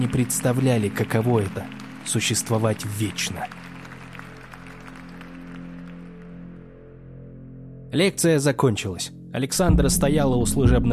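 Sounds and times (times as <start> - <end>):
speech: 0.0 - 3.7, 7.9 - 10.9
audience applause: 0.0 - 6.4.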